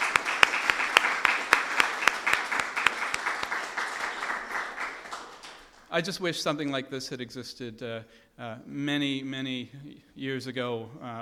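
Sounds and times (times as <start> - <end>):
audience applause: 0.0 - 5.9
speech: 6.0 - 11.2.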